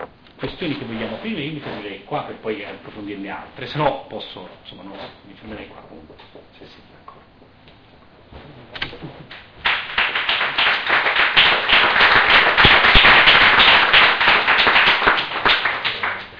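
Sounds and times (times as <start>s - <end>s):
speech: 0.4s - 7.6s
audience applause: 9.6s - 16.3s.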